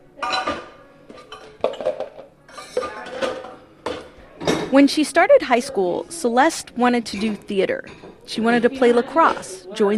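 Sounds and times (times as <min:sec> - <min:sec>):
dishes and cutlery clattering as breakfast remains are cleared in a kitchen: 0:00.2 - 0:04.8, 0:07.1 - 0:09.9
speech: 0:04.7 - 0:09.9.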